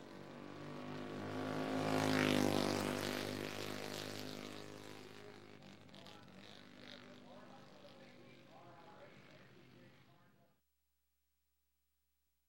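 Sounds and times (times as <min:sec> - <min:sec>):
lightweight vintage racing motorcycle passing by: 0:00.0 - 0:07.8.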